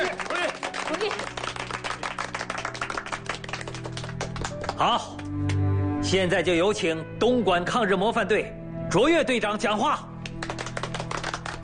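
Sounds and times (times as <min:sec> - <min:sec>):
applause: 0:00.0 - 0:05.6, 0:10.2 - 0:11.6
speech: 0:00.9 - 0:01.4, 0:04.8 - 0:10.1.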